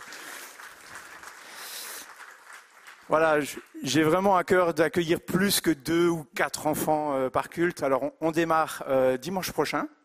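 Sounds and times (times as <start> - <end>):
audience applauding: 0.0 - 4.0
speech: 3.1 - 10.0.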